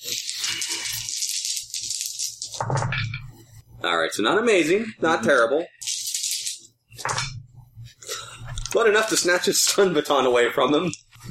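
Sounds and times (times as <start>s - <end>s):
dice being rolled: 0.0s - 2.8s, 5.8s - 6.7s
speech: 3.8s - 5.8s, 8.8s - 11.2s.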